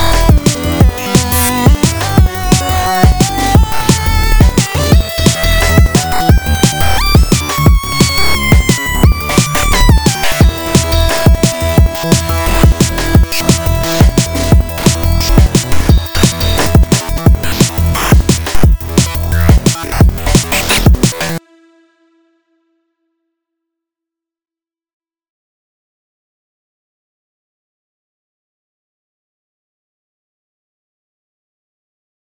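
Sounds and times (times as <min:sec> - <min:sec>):
wavetable synth funk: 0:00.0 - 0:21.9.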